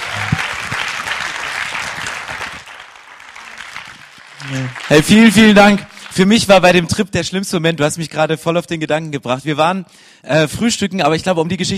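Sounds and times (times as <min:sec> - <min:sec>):
audience applause: 0:00.0 - 0:06.8
speech: 0:04.5 - 0:11.7.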